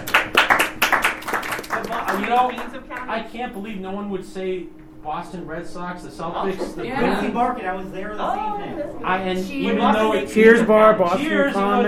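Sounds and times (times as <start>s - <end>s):
round of applause: 0.0s - 3.0s
speech: 1.7s - 11.8s.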